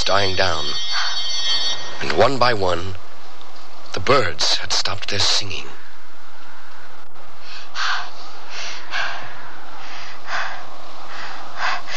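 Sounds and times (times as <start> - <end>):
speech: 0.1 - 1.2, 2.0 - 3.0, 4.0 - 5.8
loud heavy breathing: 7.3 - 11.9.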